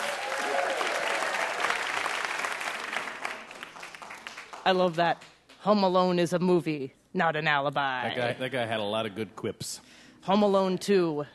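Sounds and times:
audience applause: 0:00.0 - 0:04.7
speech: 0:04.7 - 0:11.3.

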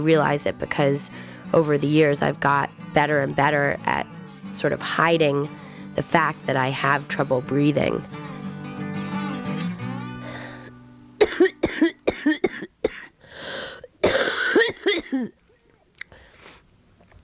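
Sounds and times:
speech: 0:00.0 - 0:08.2
hard coughing fit: 0:11.2 - 0:15.3.

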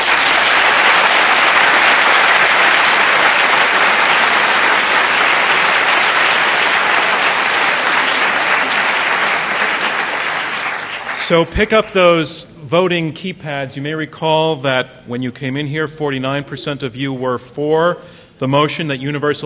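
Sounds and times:
large audience applause: 0:00.0 - 0:11.5
speech: 0:11.3 - 0:19.4.

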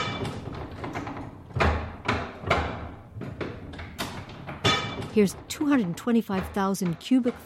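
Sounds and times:
old printing press running: 0:00.0 - 0:07.4
speech: 0:05.2 - 0:07.4.

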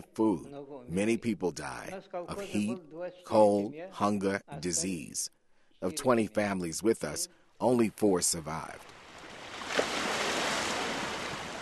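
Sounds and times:
speech: 0:00.2 - 0:09.0
waves on the Black Sea shore at Kerch in Crimea: 0:08.9 - 0:11.5.

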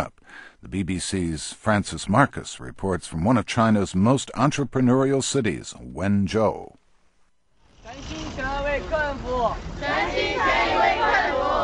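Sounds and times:
speech: 0:00.0 - 0:06.8
restaurant staff chanting slogans in unison on the pavement: 0:09.7 - 0:11.6.

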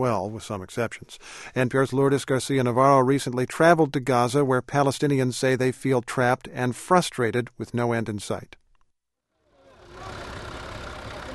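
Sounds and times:
speech: 0:00.0 - 0:08.6
bus engines idling at the Gaza City bus station: 0:09.4 - 0:11.3.

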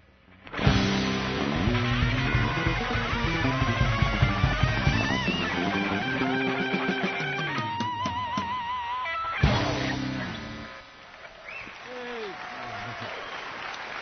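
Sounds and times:
live music from a house band at an evening stage event: 0:00.6 - 0:10.8.

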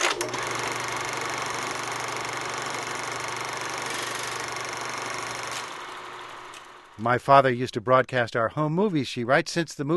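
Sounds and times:
8mm movie projector whirring and clicking: 0:00.0 - 0:07.0
speech: 0:07.0 - 0:09.9.

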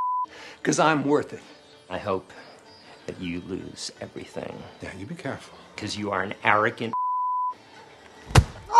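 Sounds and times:
speech: 0:00.2 - 0:02.5, 0:03.1 - 0:07.0
hard punch in a film scene: 0:08.3 - 0:08.7.

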